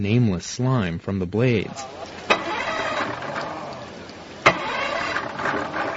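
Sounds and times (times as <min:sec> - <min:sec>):
speech: 0:00.0 - 0:02.2
boat motor being restarted after several tries: 0:01.6 - 0:05.9.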